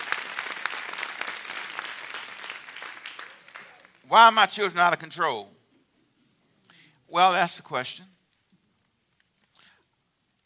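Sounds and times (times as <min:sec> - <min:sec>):
audience hand clapping: 0:00.0 - 0:04.1
speech: 0:04.1 - 0:05.6, 0:07.1 - 0:08.1.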